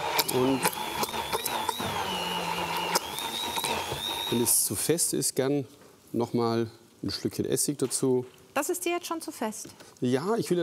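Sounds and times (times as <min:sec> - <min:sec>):
immersion blender pureeing tuna sauce: 0:00.0 - 0:05.0
speech: 0:00.3 - 0:00.8, 0:04.3 - 0:10.6.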